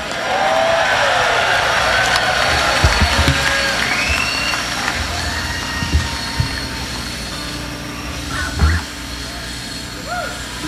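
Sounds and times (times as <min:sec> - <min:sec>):
train arriving: 0:00.0 - 0:10.6.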